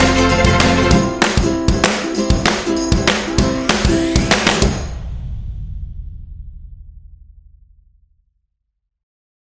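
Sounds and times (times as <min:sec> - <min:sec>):
ukulele: 0:00.0 - 0:04.8
claps: 0:00.6 - 0:03.3.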